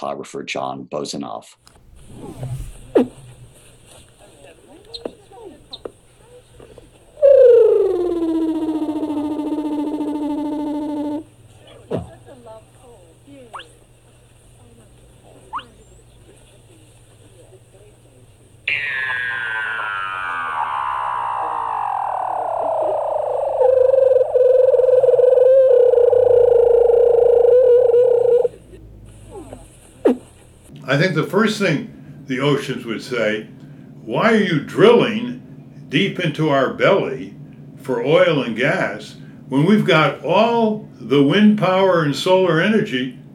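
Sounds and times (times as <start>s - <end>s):
speech: 0.0s - 3.1s, 31.0s - 35.3s, 35.9s - 37.3s, 37.9s - 43.2s
sleeping Weddell seal vocalizing on ice in Antarctica: 7.2s - 12.1s, 15.5s - 15.9s, 18.7s - 30.3s.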